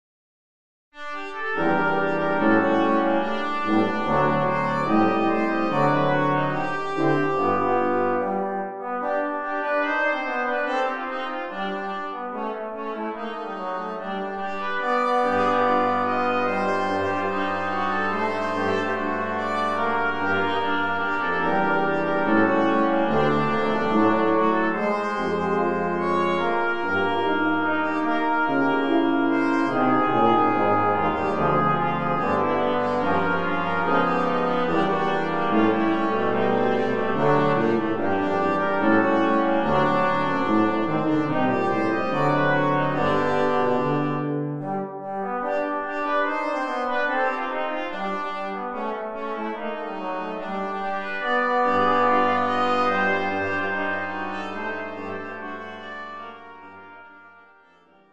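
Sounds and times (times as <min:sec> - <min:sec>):
quintet playing: 0:01.0 - 0:58.1.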